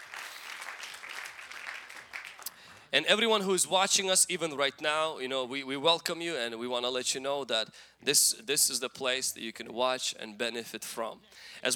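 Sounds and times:
church congregation clapping during a service: 0.0 - 2.9
speech: 2.9 - 11.7.

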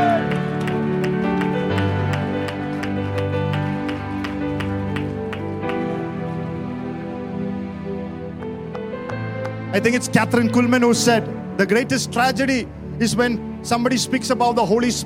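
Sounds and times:
audience clapping: 0.0 - 6.7, 8.4 - 9.9
speech: 9.8 - 15.0.

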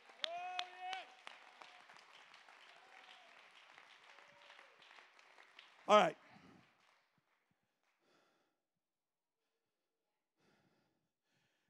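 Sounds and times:
audience clapping: 0.0 - 8.0
speech: 5.9 - 6.2.

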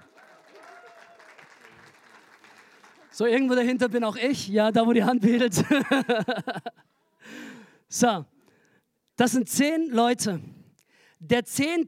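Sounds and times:
audience applause: 0.0 - 3.8
speech: 3.2 - 6.8, 7.9 - 8.3, 9.2 - 10.6, 11.2 - 11.8
laughter: 5.5 - 6.9.

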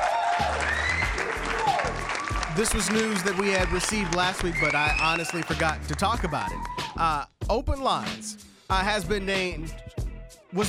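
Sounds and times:
round of applause: 0.0 - 7.0
speech: 2.6 - 9.9.

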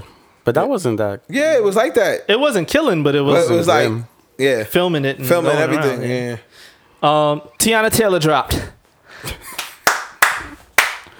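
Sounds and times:
speech: 0.5 - 9.4
slow golf clap: 9.3 - 11.1.

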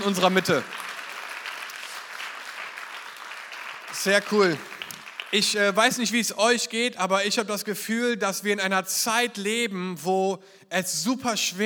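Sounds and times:
speech: 0.0 - 0.9, 4.0 - 4.7, 5.3 - 11.6
crowd applause: 0.0 - 5.7.

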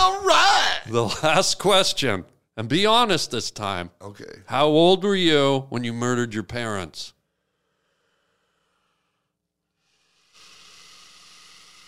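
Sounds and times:
speech: 0.0 - 7.2
person hissing: 9.8 - 11.8.

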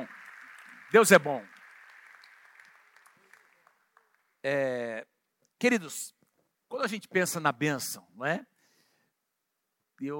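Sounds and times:
audience applause: 0.0 - 4.6
speech: 0.9 - 1.6, 4.4 - 8.5, 10.0 - 10.1.

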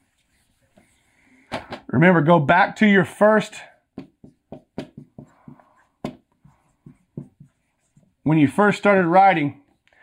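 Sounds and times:
speech: 1.9 - 3.7, 8.3 - 9.6
writing on a board: 4.0 - 8.3.

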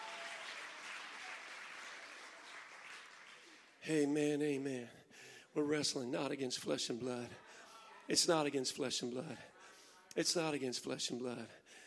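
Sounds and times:
audience clapping hands in praise: 0.0 - 3.8
speech: 3.8 - 9.5, 10.1 - 11.8.

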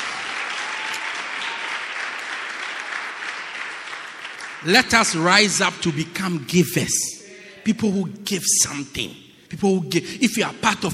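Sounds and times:
audience clapping hands: 0.0 - 5.8
speech: 4.6 - 10.9.

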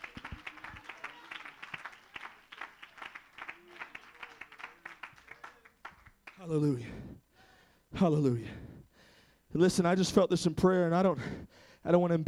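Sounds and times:
murmured voices and cheers: 0.0 - 5.6
audience clapping hands: 0.0 - 6.7
speech: 6.4 - 7.1, 8.0 - 8.7, 9.5 - 12.2.

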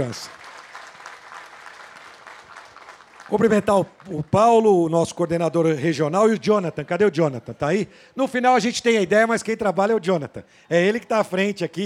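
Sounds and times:
speech: 0.0 - 0.4, 3.3 - 11.8
audience applause: 0.0 - 4.6.

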